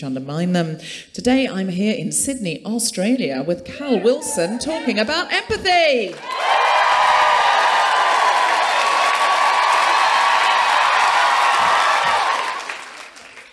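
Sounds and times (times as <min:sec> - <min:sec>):
speech: 0:00.0 - 0:06.6
live audience cheering and applauding: 0:04.7 - 0:13.5.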